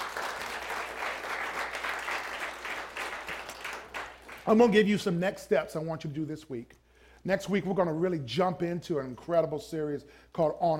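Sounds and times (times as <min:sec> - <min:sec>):
audience hand clapping: 0:00.0 - 0:04.7
speech: 0:04.5 - 0:10.7.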